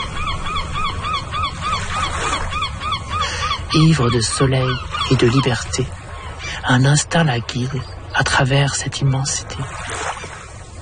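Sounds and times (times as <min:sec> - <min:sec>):
seagull cries: 0:00.0 - 0:06.6
steady hiss: 0:00.0 - 0:10.8
speech: 0:03.7 - 0:06.0, 0:06.7 - 0:10.0.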